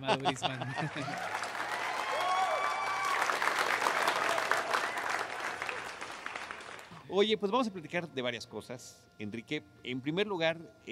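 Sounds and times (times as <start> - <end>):
laughter: 0.0 - 1.5
speech: 0.0 - 1.5, 7.1 - 10.8
stadium-like applause sound effect from a large crowd: 0.0 - 7.0
whistles and cheers: 1.0 - 6.0.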